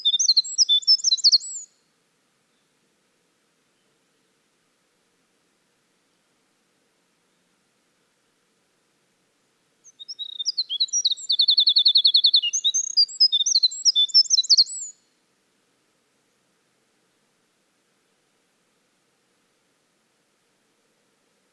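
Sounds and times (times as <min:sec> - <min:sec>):
Winter wren in full song: 0:00.0 - 0:01.7, 0:09.9 - 0:15.0.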